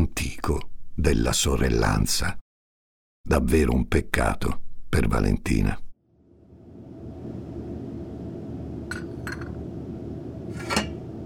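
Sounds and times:
speech: 0:00.5 - 0:02.4, 0:03.2 - 0:05.8
low rumble: 0:06.1 - 0:11.2
teacups clinking: 0:08.9 - 0:09.6.

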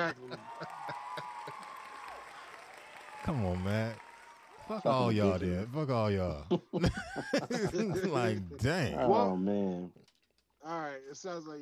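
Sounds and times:
speech: 0:00.0 - 0:00.8, 0:03.3 - 0:04.0, 0:04.7 - 0:10.0, 0:10.6 - 0:11.6
laughter: 0:00.0 - 0:01.8, 0:04.7 - 0:09.0
crowd applause sound effect: 0:00.0 - 0:05.6.

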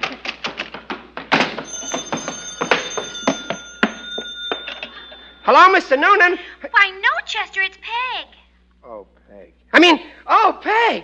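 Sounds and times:
irregular thumps and clatter: 0:00.0 - 0:05.0
telephone ringing: 0:01.6 - 0:06.8
speech: 0:05.5 - 0:08.3, 0:09.7 - 0:11.0.

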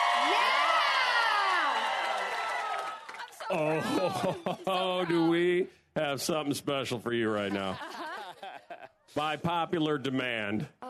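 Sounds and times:
crowd cheering, whooping and shouting: 0:00.0 - 0:05.5
laughter: 0:03.5 - 0:05.4, 0:07.3 - 0:09.4
speech: 0:03.5 - 0:08.1, 0:09.1 - 0:10.8.

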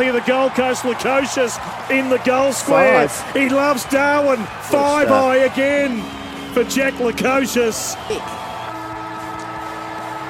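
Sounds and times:
speech: 0:00.0 - 0:08.4
stadium siren sounding for full time at TIO Stadium in Darwin: 0:04.9 - 0:10.2.

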